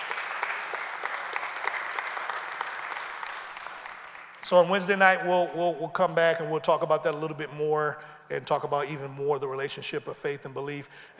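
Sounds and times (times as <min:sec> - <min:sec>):
audience hand clap of praise: 0:00.0 - 0:04.7
speech: 0:04.5 - 0:11.1.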